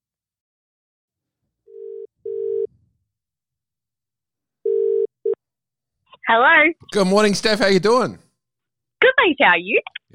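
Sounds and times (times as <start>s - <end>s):
telephone ringing out: 1.7s - 2.7s, 4.6s - 5.4s
speech: 6.3s - 8.2s, 9.2s - 10.1s.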